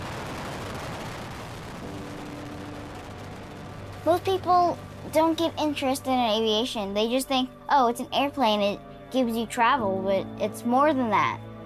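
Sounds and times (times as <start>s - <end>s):
Discovery space shuttle booster ignition and liftoff rumble: 0.0s - 7.1s
speech: 4.0s - 11.4s.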